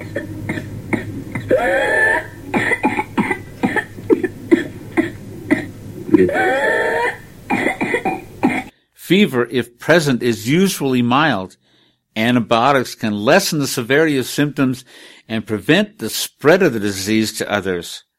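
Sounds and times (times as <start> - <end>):
whooping cough fit ending in whoop: 0.0 - 8.7
speech: 0.2 - 0.7, 1.5 - 1.9, 6.2 - 6.8, 9.1 - 11.6, 12.2 - 18.1.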